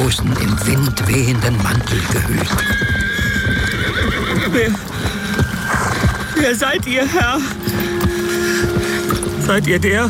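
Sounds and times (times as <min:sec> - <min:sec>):
horse galloping: 0:00.0 - 0:10.0
speech: 0:00.1 - 0:03.6, 0:04.5 - 0:05.1, 0:06.4 - 0:07.8, 0:09.5 - 0:10.0
horse neighing: 0:00.3 - 0:06.6.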